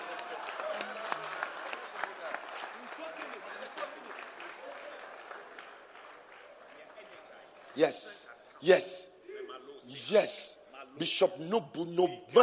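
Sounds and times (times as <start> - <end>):
audience clapping: 0.0 - 8.5
speech: 7.8 - 9.1, 9.9 - 12.4.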